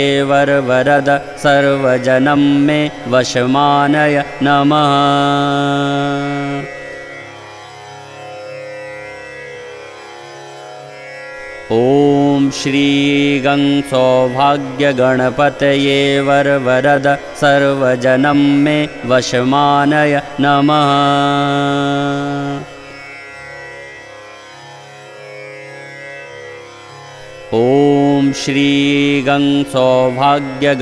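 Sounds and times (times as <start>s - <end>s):
mantra chanting: 0.0s - 7.0s, 11.7s - 22.9s, 27.5s - 30.7s.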